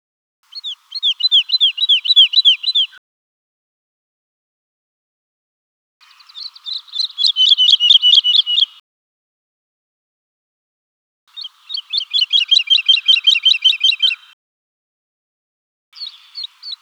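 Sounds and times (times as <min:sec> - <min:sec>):
woodlark singing: 0:00.5 - 0:03.0, 0:06.0 - 0:08.8, 0:11.3 - 0:14.4, 0:16.0 - 0:16.7.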